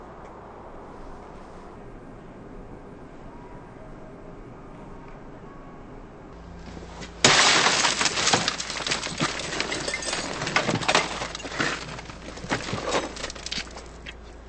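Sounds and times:
car window shattering in a break-in: 7.2s - 13.9s
glass fragments tinkling: 7.2s - 13.9s.

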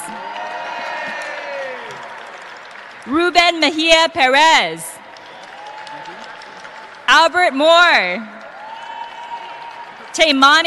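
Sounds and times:
audience clapping: 0.0s - 10.6s
speech: 3.1s - 4.9s, 7.2s - 8.3s, 10.2s - 10.6s.

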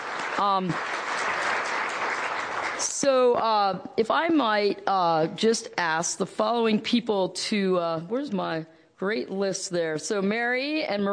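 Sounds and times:
audience applause: 0.0s - 2.9s
speech: 0.4s - 1.0s, 2.8s - 11.1s.

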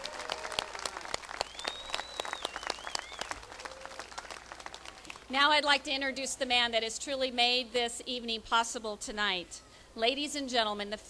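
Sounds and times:
faint whoops: 0.0s - 4.2s
audience applause: 0.0s - 5.3s
high-pitched whistle: 1.4s - 3.3s
speech: 5.3s - 11.0s.

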